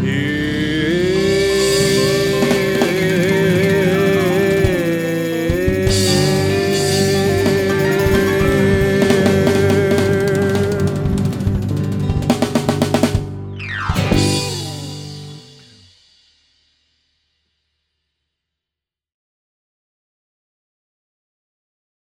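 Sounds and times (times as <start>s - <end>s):
noise: 0.2s - 15.8s.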